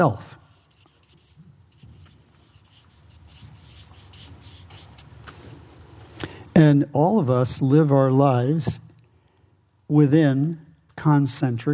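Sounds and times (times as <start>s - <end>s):
speech: 0.0s - 0.4s, 6.6s - 8.8s, 9.9s - 11.7s
low hum: 0.0s - 11.7s
pen drawing a circle on paper: 0.5s - 5.7s.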